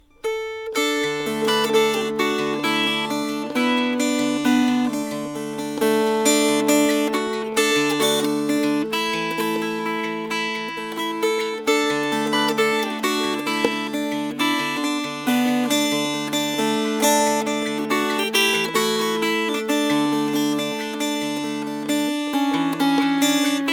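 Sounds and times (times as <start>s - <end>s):
fingerpicked strings: 0.0s - 23.7s.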